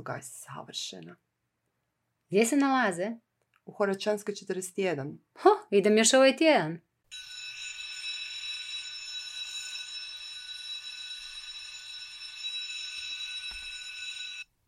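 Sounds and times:
speech: 0:00.0 - 0:01.3, 0:02.3 - 0:07.3
school bell ringing: 0:07.1 - 0:14.5.

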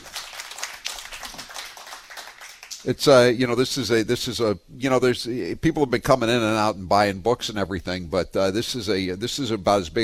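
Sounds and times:
Republican gathering applauding a candidate for governor in Norfolk County: 0:00.0 - 0:02.8
speech: 0:02.8 - 0:10.0.

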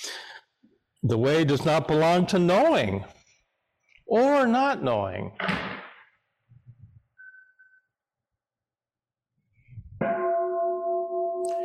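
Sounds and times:
speech: 0:01.0 - 0:03.2, 0:04.1 - 0:05.6
struck meditation bell ringing: 0:10.0 - 0:11.6.

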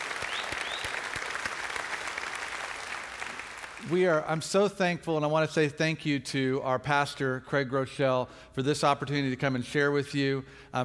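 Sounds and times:
church audience applauding as a warm welcome: 0:00.0 - 0:04.0
whistle: 0:00.2 - 0:01.0
speech: 0:03.8 - 0:10.8.

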